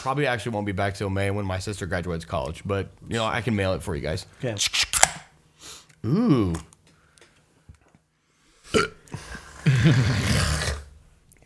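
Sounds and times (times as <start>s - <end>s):
speech: 0.0s - 5.3s, 6.0s - 6.7s, 8.7s - 10.7s
loud burp: 8.7s - 10.9s.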